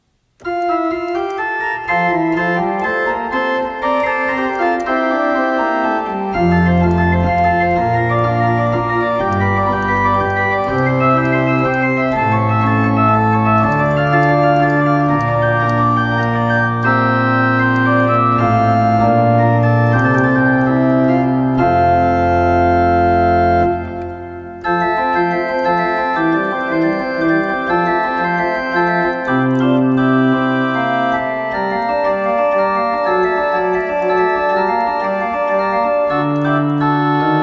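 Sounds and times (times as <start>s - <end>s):
prelude and fugue: 0.0s - 37.4s.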